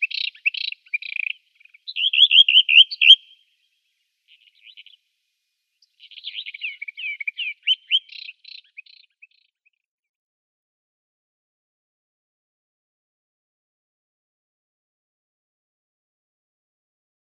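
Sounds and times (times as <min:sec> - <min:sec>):
Eastern Orphean Warbler singing: 0:00.0 - 0:03.4, 0:04.3 - 0:05.0, 0:05.8 - 0:09.8.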